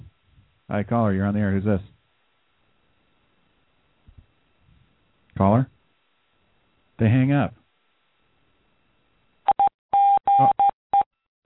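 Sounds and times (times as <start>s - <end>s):
speech: 0.7s - 1.9s, 5.4s - 5.8s, 7.0s - 7.6s, 10.4s - 10.6s
telephone keypad tones on a call-in line: 9.5s - 11.1s.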